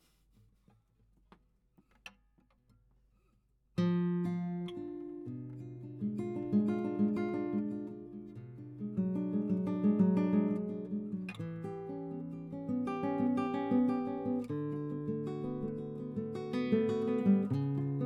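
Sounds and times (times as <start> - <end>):
guitar: 3.8 - 18.0.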